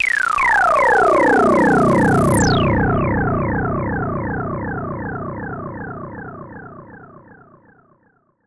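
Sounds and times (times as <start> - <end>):
SH-09 synthesizer with delay: 0.0 - 8.0.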